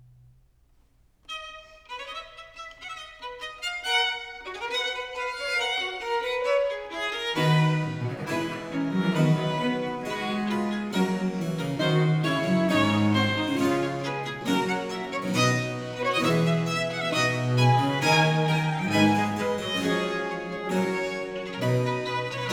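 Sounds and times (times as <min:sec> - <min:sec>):
violin sonata fugue in C major: 0:01.3 - 0:22.5.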